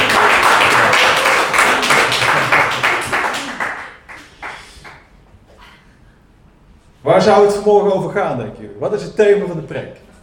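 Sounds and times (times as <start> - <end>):
audience applause: 0.0 - 5.1
speech: 7.2 - 10.0.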